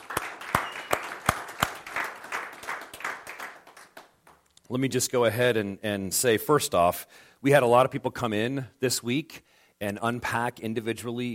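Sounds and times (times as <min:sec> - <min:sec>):
audience applause: 0:00.0 - 0:04.4
speech: 0:04.7 - 0:11.3.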